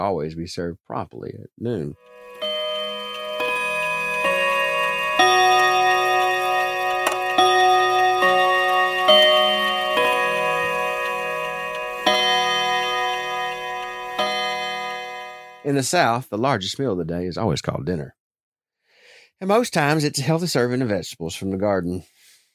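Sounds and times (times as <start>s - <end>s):
speech: 0.0s - 2.4s, 15.7s - 18.2s, 19.4s - 22.1s
mantel clock ticking: 2.6s - 15.6s.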